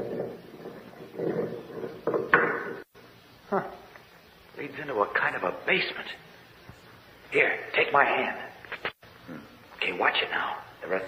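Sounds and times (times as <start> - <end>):
heavy stone door grinding and scraping open: 0.0 - 2.9
speech: 3.5 - 3.8, 4.6 - 6.3, 7.3 - 8.4, 10.0 - 11.0.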